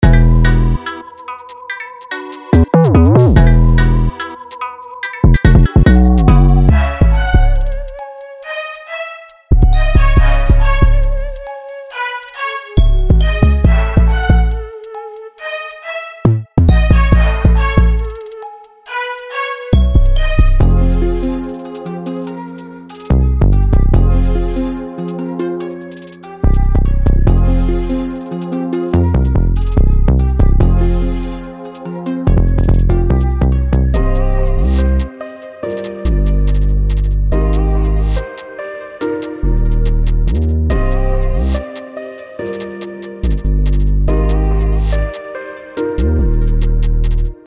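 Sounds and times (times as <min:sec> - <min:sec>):
drill music melodies: 0:00.0 - 0:47.4.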